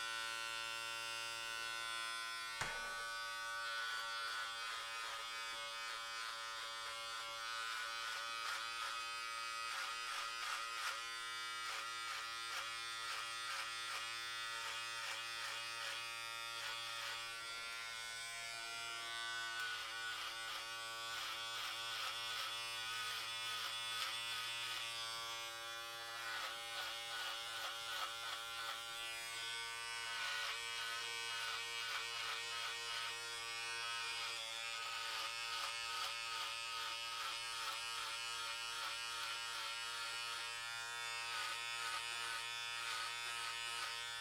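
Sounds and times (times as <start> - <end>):
hair clippers cutting: 0.0 - 44.1.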